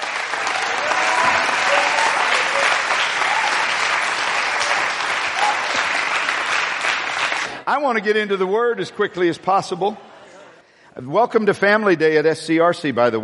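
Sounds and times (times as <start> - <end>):
church congregation applauding at a family Sunday service: 0.0 - 7.7
speech: 7.7 - 10.1, 11.0 - 13.2.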